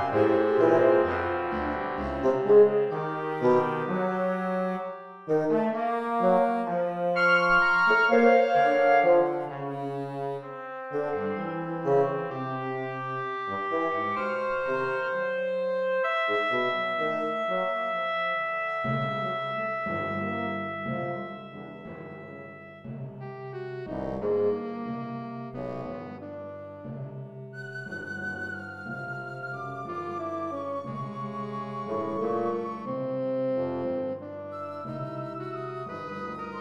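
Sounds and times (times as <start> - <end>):
saxophone band playing: 0.0 - 26.8, 29.8 - 36.5.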